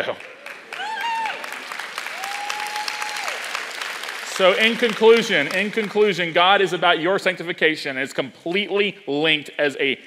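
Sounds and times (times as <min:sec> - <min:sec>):
speech: 0:00.0 - 0:00.4, 0:04.4 - 0:10.0
applause: 0:00.0 - 0:06.4
audience cheering: 0:00.3 - 0:06.2.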